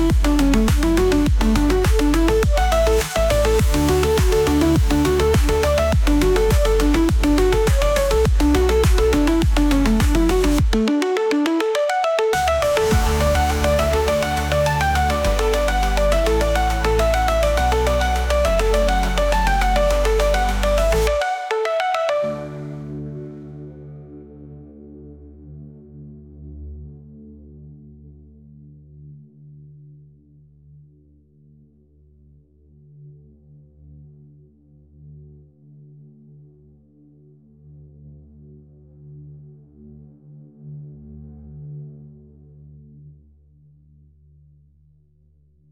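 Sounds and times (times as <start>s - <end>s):
dance music: 0.0s - 23.0s.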